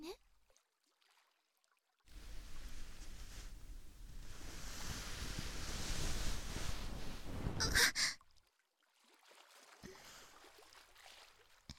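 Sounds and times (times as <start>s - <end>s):
ear cleaning ASMR sounds: 2.1s - 8.1s.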